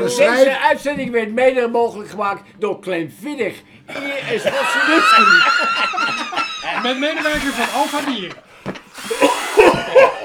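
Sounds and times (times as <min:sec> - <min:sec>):
laughter: 0:00.0 - 0:00.8, 0:03.9 - 0:10.2
speech: 0:00.0 - 0:08.5
steady buzzing hiss: 0:06.8 - 0:10.0
Makita power drill whirring: 0:07.0 - 0:08.3.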